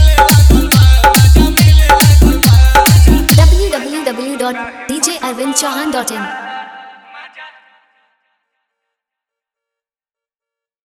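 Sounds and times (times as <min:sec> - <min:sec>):
Bhojpuri DJ remix song with hard vibration bass: 0:00.0 - 0:04.3.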